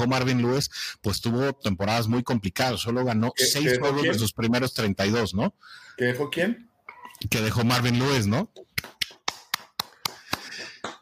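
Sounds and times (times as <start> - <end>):
speech: 0.0 - 9.0
applause: 8.8 - 11.0.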